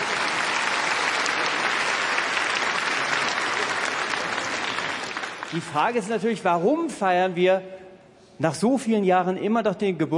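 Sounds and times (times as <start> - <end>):
audience applause: 0.0 - 6.0
speech: 5.5 - 7.8, 8.4 - 10.1.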